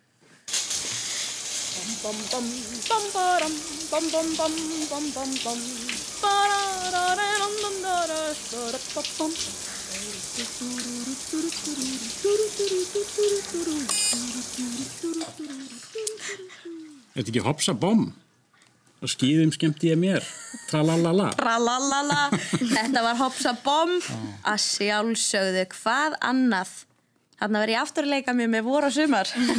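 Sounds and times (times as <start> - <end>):
shower running: 0.5 - 17.2
speech: 2.0 - 9.8, 10.4 - 18.2, 19.0 - 29.5
laughter: 21.9 - 23.4.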